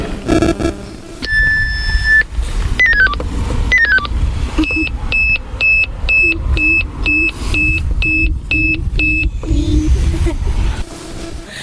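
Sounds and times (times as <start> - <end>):
low rumble: 0.0 - 11.4
phone alarm beeping: 0.3 - 2.2, 2.8 - 9.3.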